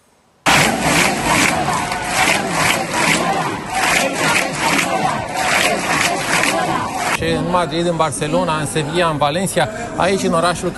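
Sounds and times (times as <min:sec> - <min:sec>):
large protest crowd chanting in a city square: 0:00.5 - 0:07.2
speech: 0:07.5 - 0:10.7.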